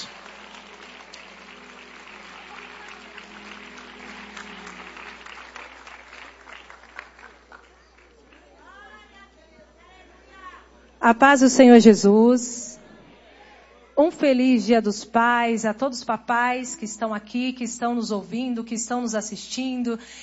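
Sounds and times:
audience applause: 0:00.0 - 0:08.6
speech: 0:11.0 - 0:12.7, 0:14.2 - 0:20.2.

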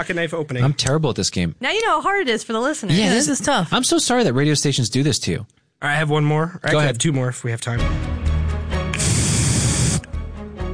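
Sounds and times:
speech: 0:00.0 - 0:08.2
canned oxygen spraying from a pressurized can: 0:09.0 - 0:10.1.

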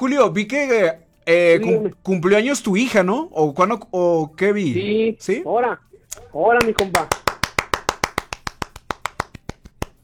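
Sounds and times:
speech: 0:00.0 - 0:07.3
applause, hand clapping: 0:06.1 - 0:10.0.

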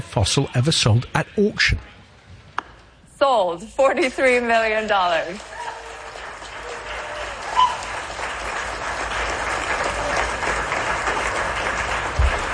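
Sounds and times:
speech: 0:00.2 - 0:02.0, 0:03.2 - 0:05.6
enthusiastic clapping at auction sale of T-Rex fossil Gus: 0:05.2 - 0:12.5.

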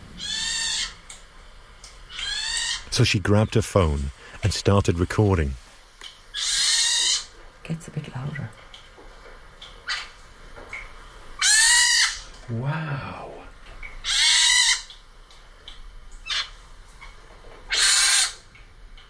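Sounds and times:
baby pine martens calling: 0:00.2 - 0:01.0, 0:02.1 - 0:02.9, 0:06.3 - 0:07.3, 0:11.4 - 0:12.3, 0:14.0 - 0:14.9, 0:16.2 - 0:16.6, 0:17.7 - 0:18.4
speech: 0:03.0 - 0:05.6, 0:07.7 - 0:08.6, 0:12.5 - 0:13.3
person exclaiming: 0:12.5 - 0:13.4.

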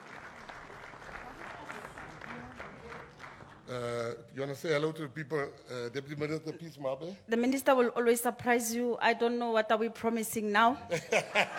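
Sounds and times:
audience applause: 0:00.0 - 0:03.8
speech: 0:03.7 - 0:11.5
laughter: 0:10.9 - 0:11.5.

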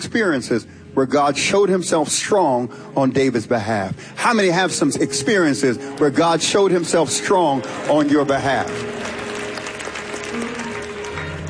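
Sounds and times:
speech: 0:00.0 - 0:09.2
church congregation clapping at a worship service: 0:05.3 - 0:11.4.

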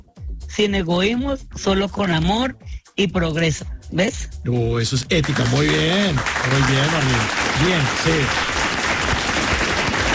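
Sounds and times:
speech: 0:00.5 - 0:08.6
audience applause: 0:05.2 - 0:10.1.

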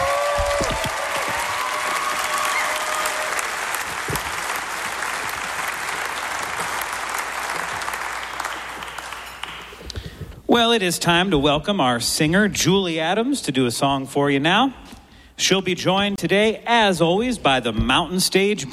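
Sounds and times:
audience applause at a live music show: 0:00.0 - 0:09.9
speech: 0:10.6 - 0:14.8, 0:15.4 - 0:18.7.

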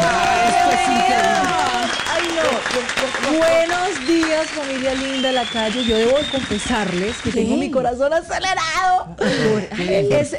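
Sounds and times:
studio applause and cheering: 0:00.0 - 0:07.9
speech: 0:03.4 - 0:10.3.

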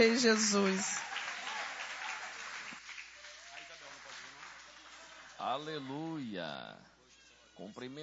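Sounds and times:
speech: 0:00.0 - 0:01.1, 0:05.4 - 0:06.9, 0:07.6 - 0:08.0
audience applause: 0:00.0 - 0:06.1.

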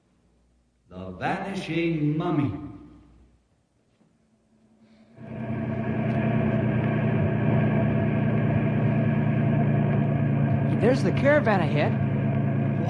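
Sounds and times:
speech: 0:01.2 - 0:02.7, 0:10.9 - 0:12.1
car engine as car drives up: 0:05.2 - 0:12.8.

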